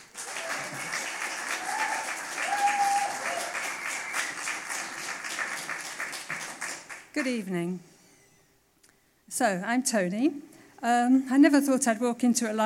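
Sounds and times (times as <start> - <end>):
audience applause welcoming an author at a library reading: 0.0 - 7.1
speech: 7.2 - 7.9, 9.4 - 12.6.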